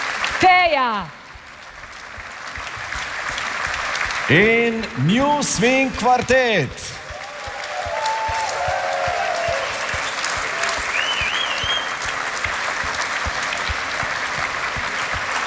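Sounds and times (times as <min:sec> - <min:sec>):
audience applause: 0:00.0 - 0:15.4
speech: 0:00.4 - 0:01.2, 0:04.3 - 0:07.0
faint whistles: 0:10.9 - 0:12.0.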